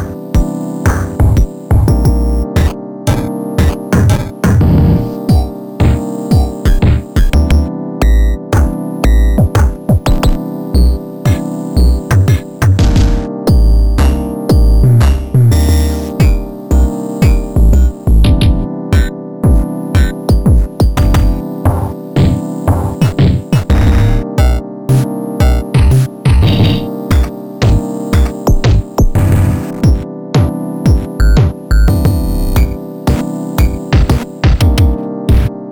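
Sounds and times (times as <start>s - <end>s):
bitware kick drum: 0.4s - 10.4s, 11.3s - 24.6s, 25.4s - 35.5s.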